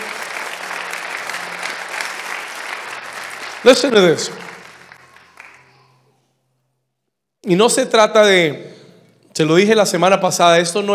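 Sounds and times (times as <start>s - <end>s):
audience applause: 0.0s - 6.2s
speech: 3.6s - 4.5s, 7.5s - 8.7s, 9.4s - 10.9s.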